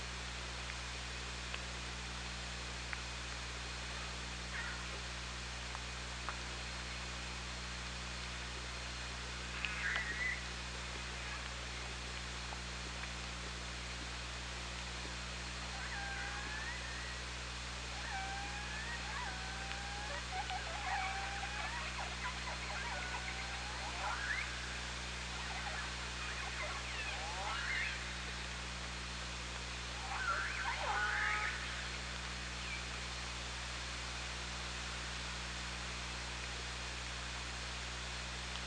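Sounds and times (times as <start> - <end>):
steady hiss and low hum: 0.0 - 38.6
orca calls: 15.7 - 17.2, 17.9 - 28.3, 30.0 - 32.0.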